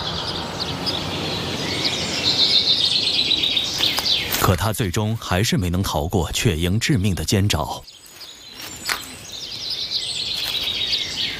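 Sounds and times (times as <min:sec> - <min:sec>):
house sparrows fleeing with flapping wings: 0:00.1 - 0:04.5, 0:08.0 - 0:09.3, 0:10.2 - 0:11.1
speech: 0:04.5 - 0:08.0.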